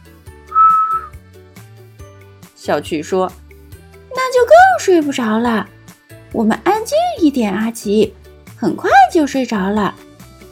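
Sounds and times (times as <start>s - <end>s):
person whistling a tune: 0.5s - 1.2s
speech: 2.6s - 3.4s, 4.4s - 10.0s.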